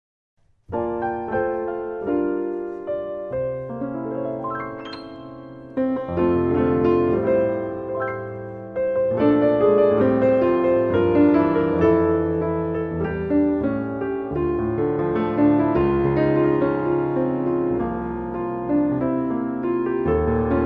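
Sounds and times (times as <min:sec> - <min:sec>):
solo piano: 0:00.4 - 0:20.6.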